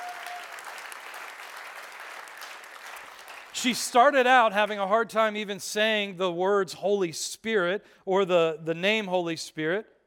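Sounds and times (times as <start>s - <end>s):
audience applause: 0.0s - 3.8s
speech: 3.6s - 10.0s.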